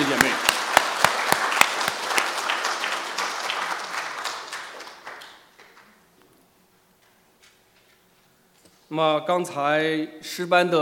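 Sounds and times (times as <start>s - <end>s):
applause: 0.0s - 6.0s
speech: 8.9s - 10.8s.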